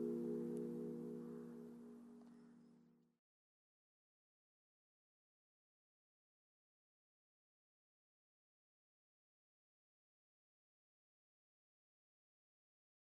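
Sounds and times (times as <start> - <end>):
used multi-voice church bells ringing in d1 f1 g1: 0.0 - 1.9.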